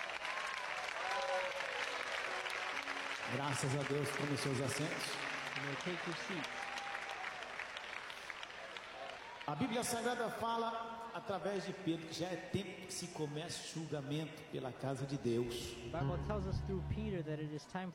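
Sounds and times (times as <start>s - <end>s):
audience clapping hands in praise: 0.0s - 10.2s
speech: 3.3s - 6.6s, 9.5s - 17.9s.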